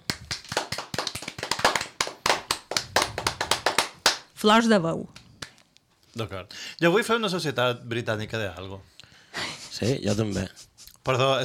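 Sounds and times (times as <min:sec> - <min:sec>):
applause: 0:00.0 - 0:04.3
speech: 0:04.4 - 0:05.2, 0:06.2 - 0:08.9, 0:09.8 - 0:11.4.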